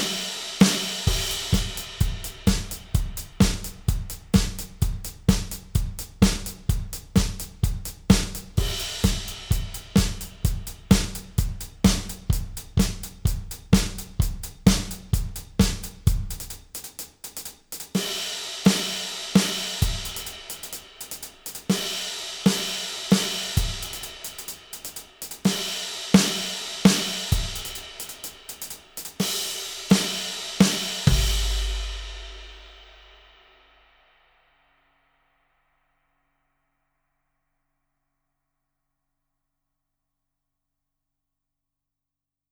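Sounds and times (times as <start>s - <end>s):
128 bpm drum track played on Yamaha FGDP-30: 0.0s - 33.6s.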